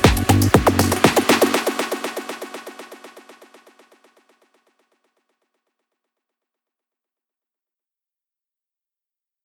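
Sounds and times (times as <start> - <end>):
Berlin techno music: 0.0 - 3.6.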